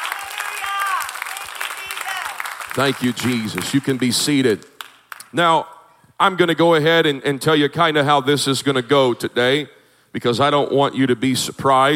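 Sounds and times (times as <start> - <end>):
church congregation clapping in praise during a morning service: 0.0 - 5.4
speech: 2.8 - 4.7, 5.3 - 11.9.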